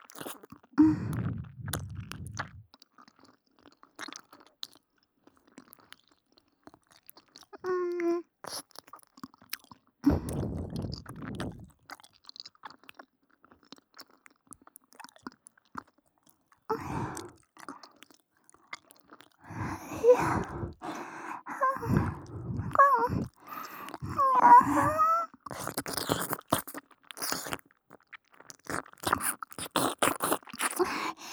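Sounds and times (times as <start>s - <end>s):
ear licking in the left channel only: 0.1s - 2.6s, 10.1s - 11.8s, 19.4s - 27.6s, 28.5s - 31.3s.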